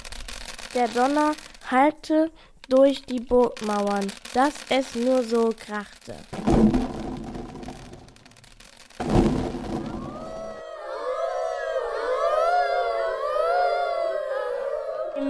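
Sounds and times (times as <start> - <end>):
speech: 0.7 - 6.8
wolves howling in the forest: 9.8 - 15.2.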